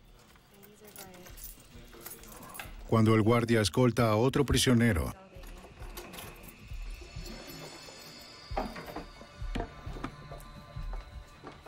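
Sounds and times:
keychain jangling while loosening screws: 0.0s - 2.9s, 5.4s - 11.6s
speech: 2.9s - 5.2s.

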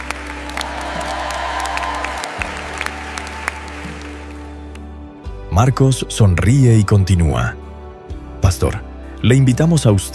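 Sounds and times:
applause in a church: 0.0s - 5.0s
speech: 5.6s - 7.6s, 8.5s - 10.1s.

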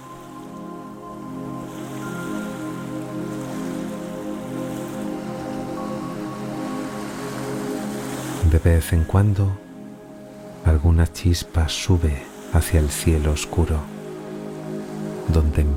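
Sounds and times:
soft sea waves: 0.0s - 15.7s
speech: 8.6s - 9.6s, 10.8s - 13.9s, 15.3s - 15.7s.

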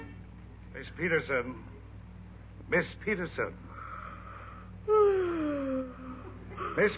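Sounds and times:
speech: 0.8s - 1.8s, 2.7s - 3.7s, 6.8s - 6.9s
woman yawning: 4.8s - 6.4s.

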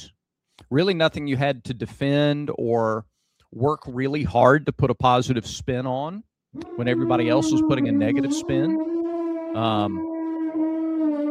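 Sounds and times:
speech: 0.7s - 8.9s, 9.5s - 10.1s
steady high-pitched tone: 6.6s - 10.0s
brassy elephant-like trumpeting blast: 6.6s - 11.2s.

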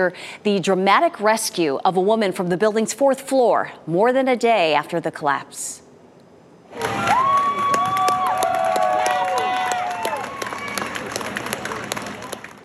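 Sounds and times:
speech: 0.0s - 5.8s, 6.7s - 7.3s
crowd applause: 6.7s - 12.6s
whoops and shouts: 6.8s - 10.9s.

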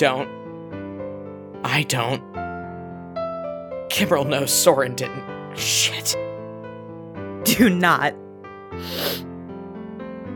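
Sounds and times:
speech: 0.0s - 0.4s, 1.6s - 2.4s, 3.9s - 6.3s, 7.4s - 9.3s
sniffle: 8.8s - 9.2s.

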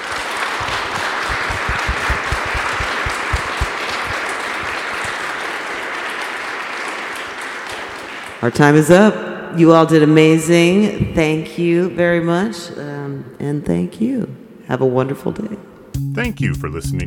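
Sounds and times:
audience applause for poets: 0.0s - 8.5s
speech: 8.4s - 17.0s.

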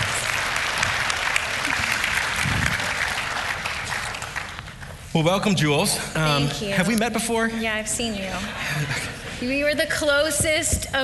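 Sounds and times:
audience applause welcoming a guest onto a stage: 0.0s - 5.1s
speech: 5.2s - 11.0s.

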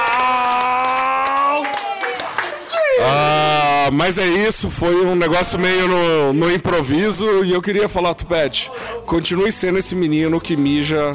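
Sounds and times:
group clapping hands: 0.0s - 3.3s
speech: 3.9s - 11.1s.

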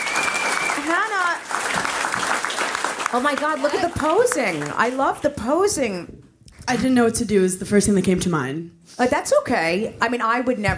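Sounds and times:
audience applause greeting an arriving guest: 0.0s - 5.7s
speech: 3.1s - 10.7s.

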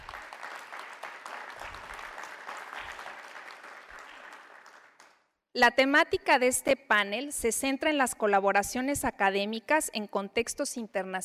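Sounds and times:
audience applause: 0.0s - 5.2s
speech: 5.6s - 11.2s.

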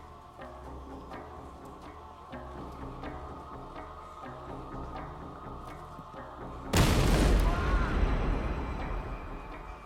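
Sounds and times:
bomb explosion: 6.8s - 8.8s.

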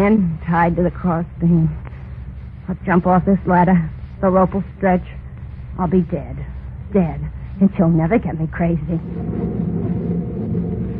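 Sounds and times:
speech: 0.0s - 1.8s, 2.7s - 5.2s, 5.8s - 9.8s
thunder: 9.0s - 10.9s.

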